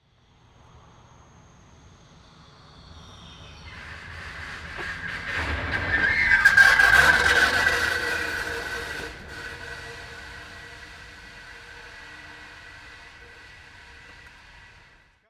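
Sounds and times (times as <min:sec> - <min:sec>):
car passing: 0:03.7 - 0:15.1
rock rattling in the car brakes: 0:04.8 - 0:14.9.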